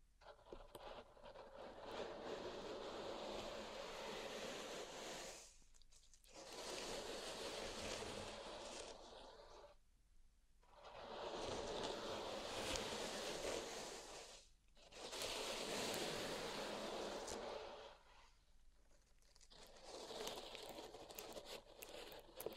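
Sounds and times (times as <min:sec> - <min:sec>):
pink salt raked in a zen garden: 0:01.5 - 0:05.6, 0:06.3 - 0:09.6, 0:11.0 - 0:14.4, 0:15.0 - 0:18.2, 0:19.4 - 0:22.5.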